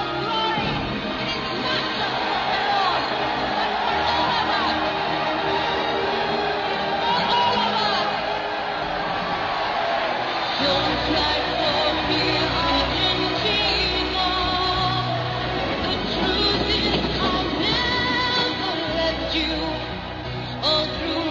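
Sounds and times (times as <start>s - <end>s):
crowd singing: 0.0s - 21.3s.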